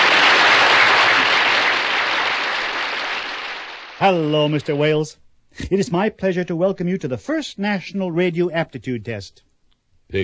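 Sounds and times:
audience applause: 0.0s - 4.9s
speech: 4.0s - 9.5s.

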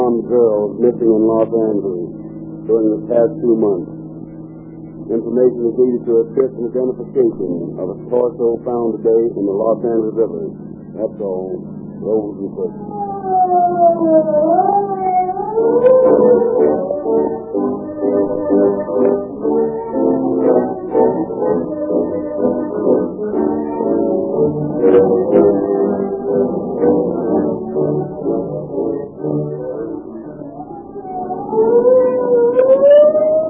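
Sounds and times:
police car siren wailing: 0.0s - 33.4s
speech: 0.3s - 4.0s, 5.1s - 14.9s, 15.6s - 19.3s.

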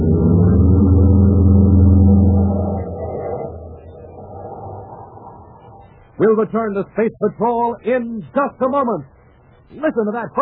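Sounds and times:
car engine droning: 0.0s - 6.2s
speech: 6.2s - 9.1s, 9.7s - 10.4s.

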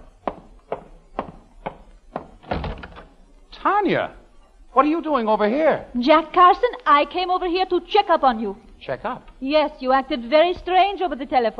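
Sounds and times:
firm knocks on a wooden front door: 0.2s - 3.0s
door rattling as pulled open: 2.4s - 3.1s
speech: 3.6s - 11.5s.

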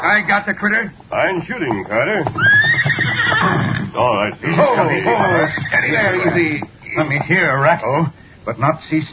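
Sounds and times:
speech: 0.1s - 2.6s, 3.4s - 9.1s
horse whinnying: 2.3s - 6.2s.

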